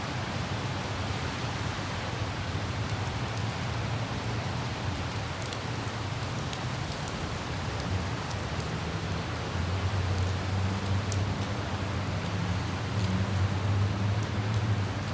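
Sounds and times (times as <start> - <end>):
city traffic: 0.0 - 15.0
light city drizzle: 0.0 - 15.0.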